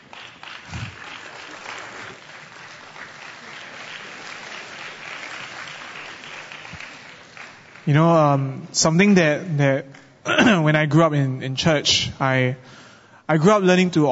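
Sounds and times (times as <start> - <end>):
audience applause: 0.0 - 7.9
speech: 7.9 - 14.1.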